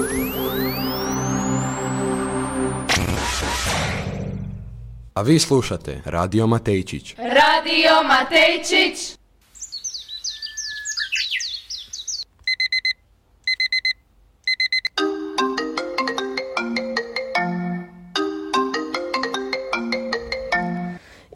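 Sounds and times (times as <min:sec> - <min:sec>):
alarm clock repeating electronic melody: 0:00.0 - 0:02.9, 0:12.5 - 0:21.0
alarm clock high electronic beeps: 0:00.0 - 0:03.4
speech: 0:05.2 - 0:09.2
chirping birdsong from an alarm clock: 0:09.5 - 0:12.3.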